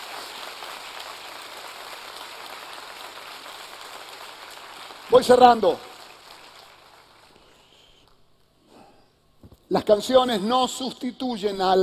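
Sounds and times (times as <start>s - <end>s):
audience applause: 0.0s - 7.3s
speech: 5.1s - 5.9s, 9.8s - 11.8s.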